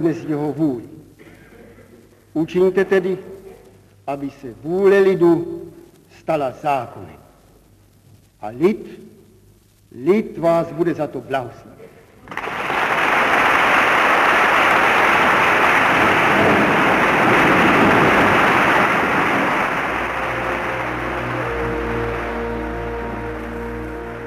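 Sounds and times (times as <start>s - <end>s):
speech: 0.0s - 1.0s, 2.4s - 3.4s, 4.1s - 7.2s, 8.4s - 9.2s, 9.9s - 12.4s
parliament deputies applauding after a speech: 12.3s - 24.2s.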